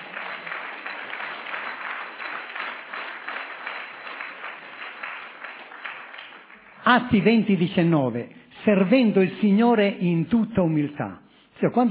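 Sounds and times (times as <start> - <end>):
audience applause: 0.0 - 7.1
speech: 6.9 - 11.8.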